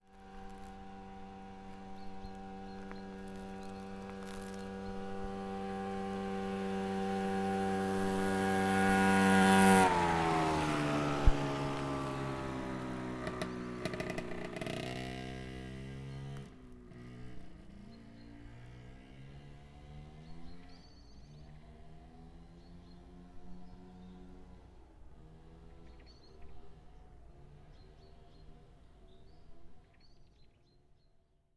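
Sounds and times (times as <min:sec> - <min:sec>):
motor scooter passing on an icy road: 0:00.1 - 0:29.5.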